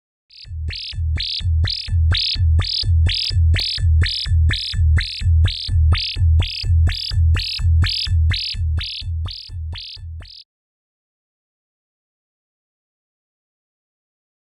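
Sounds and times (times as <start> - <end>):
EMS sequencer rhythmic synth sequence: 0.3 - 10.4.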